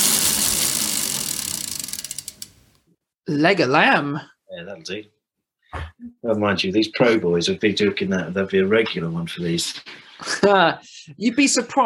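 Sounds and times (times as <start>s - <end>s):
spun wheel ratcheting clicks over a whirring rush: 0.0s - 2.6s
speech: 3.3s - 11.8s.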